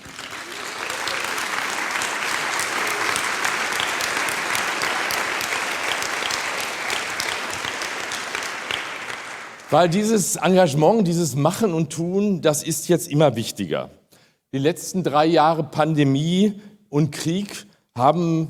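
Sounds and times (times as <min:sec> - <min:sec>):
crowd applause: 0:00.0 - 0:10.0
speech: 0:09.7 - 0:18.4.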